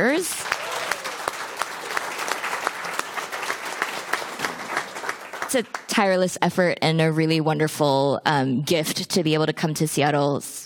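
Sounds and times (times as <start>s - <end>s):
speech: 0.0s - 0.5s, 5.5s - 10.6s
audience applause: 0.0s - 5.9s.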